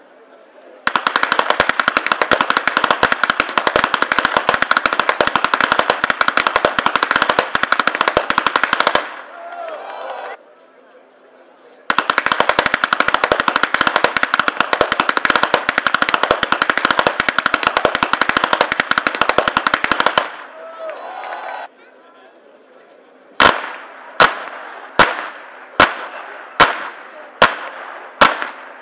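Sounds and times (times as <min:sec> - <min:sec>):
whip cracking in Flachgau: 0:00.9 - 0:09.2, 0:11.9 - 0:20.4, 0:23.4 - 0:28.8.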